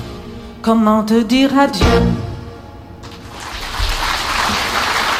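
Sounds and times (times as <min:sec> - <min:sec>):
speech: 0:00.7 - 0:02.3
audience applause after a song: 0:03.2 - 0:05.1.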